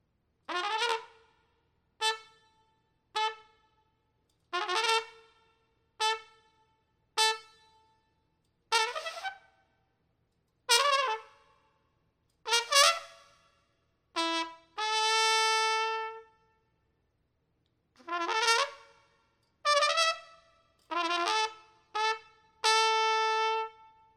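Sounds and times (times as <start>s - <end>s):
trumpet: 0.4s - 8.0s, 8.7s - 9.7s, 10.7s - 11.8s, 12.4s - 16.7s, 18.0s - 24.1s.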